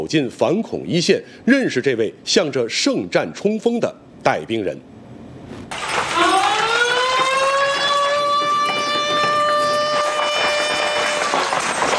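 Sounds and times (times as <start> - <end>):
speech: 0.0 - 4.9
alarm siren wailing at military base: 5.9 - 11.9.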